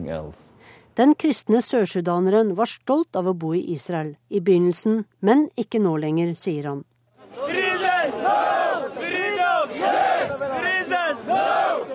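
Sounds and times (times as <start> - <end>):
speech: 0.0 - 6.9
protesters chanting slogans: 7.2 - 11.9.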